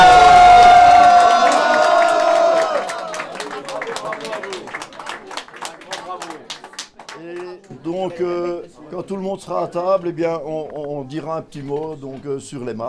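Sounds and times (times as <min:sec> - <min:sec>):
audience cheering: 0:00.0 - 0:06.6
audience applause: 0:00.0 - 0:07.7
speech: 0:09.0 - 0:12.8.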